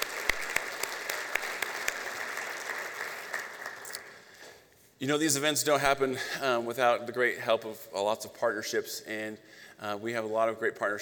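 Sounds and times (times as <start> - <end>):
audience round of applause: 0.0 - 4.2
speech: 5.0 - 10.9.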